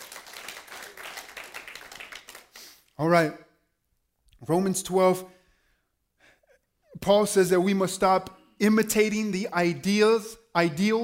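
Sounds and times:
audience hand clapping: 0.0s - 3.0s
speech: 3.0s - 3.4s, 4.4s - 5.4s, 7.0s - 11.0s.

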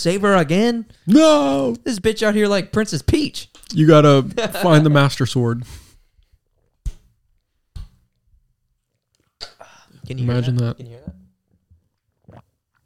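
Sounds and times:
speech: 0.0s - 5.8s, 10.1s - 11.2s
person gulping a drink: 8.8s - 9.7s, 11.8s - 12.8s.

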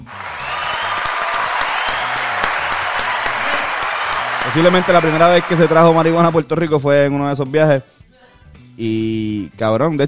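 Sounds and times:
applause: 0.0s - 6.6s
speech: 4.5s - 8.0s, 8.8s - 10.0s.

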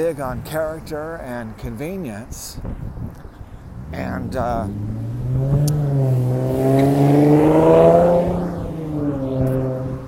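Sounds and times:
speech: 0.0s - 3.0s, 3.9s - 6.0s
Mercedes car exhaust revving: 3.7s - 10.0s.

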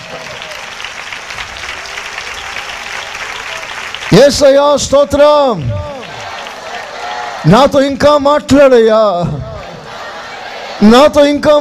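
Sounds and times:
church congregation clapping to honor God: 0.0s - 7.9s
speech: 4.1s - 5.9s, 7.4s - 9.4s, 10.8s - 11.5s.

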